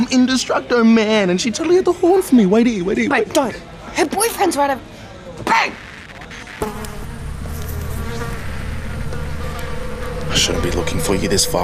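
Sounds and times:
speech: 0:00.1 - 0:05.8, 0:10.4 - 0:11.6
flies buzzing on town hall steps: 0:05.5 - 0:11.6.

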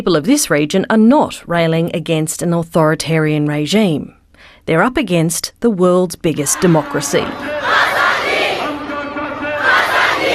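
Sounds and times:
speech: 0:00.0 - 0:08.0
crowd of protesters shouting slogans: 0:06.5 - 0:10.3.

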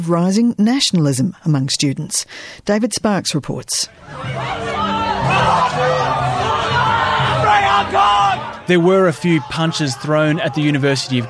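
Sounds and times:
speech: 0:00.0 - 0:06.8, 0:07.8 - 0:11.2
protesters shouting and chanting: 0:03.9 - 0:11.2.

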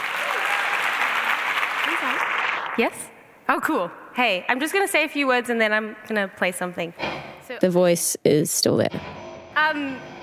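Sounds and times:
festival audience clapping to welcome a musician: 0:00.0 - 0:03.1
speech: 0:02.0 - 0:10.1.

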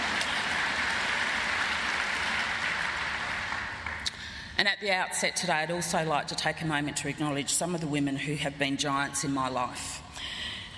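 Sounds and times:
audience clapping: 0:00.0 - 0:04.3
speech: 0:04.6 - 0:10.4.

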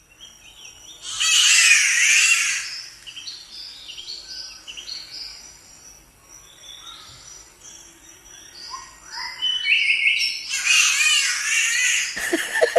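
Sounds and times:
other birds chirping and twittering: 0:00.0 - 0:12.7
spotted catbird harsh cat-like yowling wails: 0:01.1 - 0:02.7, 0:10.5 - 0:12.2
laughter: 0:12.2 - 0:12.7.

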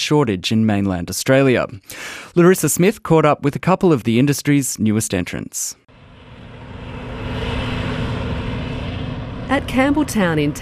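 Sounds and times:
speech: 0:00.0 - 0:05.8, 0:09.5 - 0:10.5
harvester mowing a hemp crop: 0:05.9 - 0:10.5.

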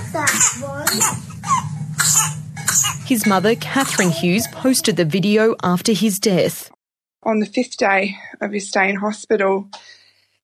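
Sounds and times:
low steady hum: 0:00.0 - 0:06.7
speech: 0:00.2 - 0:01.3, 0:03.1 - 0:10.4
infant with whooping cough coughing: 0:00.2 - 0:03.0, 0:03.7 - 0:04.8.

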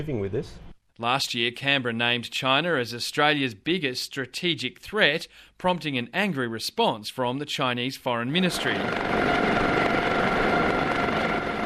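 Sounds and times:
speech: 0:00.0 - 0:09.8
helicopter hovering over a ship's flight deck: 0:08.4 - 0:11.6.

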